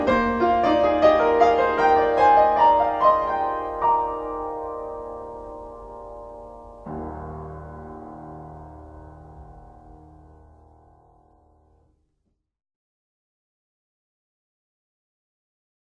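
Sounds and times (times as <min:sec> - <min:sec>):
prelude in E-flat major: 0:00.0 - 0:11.7.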